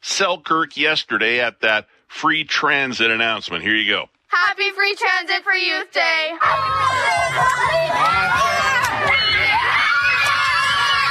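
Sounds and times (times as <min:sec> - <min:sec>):
speech: 0:00.2 - 0:09.1
students in Selkirk, Manitoba cheering and shouting to welcome the Premier: 0:06.4 - 0:11.0.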